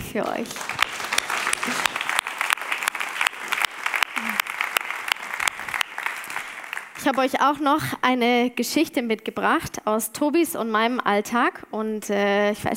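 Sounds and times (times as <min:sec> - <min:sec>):
speech: 0:00.1 - 0:00.9, 0:07.0 - 0:12.7
audience applause: 0:00.4 - 0:07.3.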